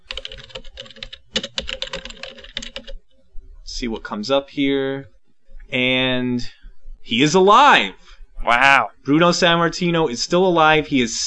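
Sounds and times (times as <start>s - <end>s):
typing a website search on a computer keyboard: 0.0s - 3.0s
speech: 3.8s - 11.2s.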